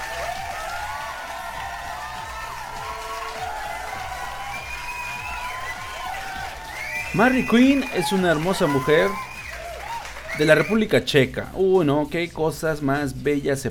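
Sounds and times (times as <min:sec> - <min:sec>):
whoops and shouts: 0:00.0 - 0:10.8
crowd applause and cheering: 0:00.0 - 0:11.0
speech: 0:07.1 - 0:09.3, 0:10.4 - 0:13.6.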